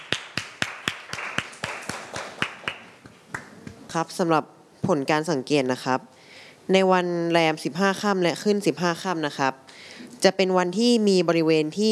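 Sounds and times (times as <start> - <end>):
classroom class clapping: 0.0 - 3.8
speech: 3.9 - 9.6, 10.2 - 11.9.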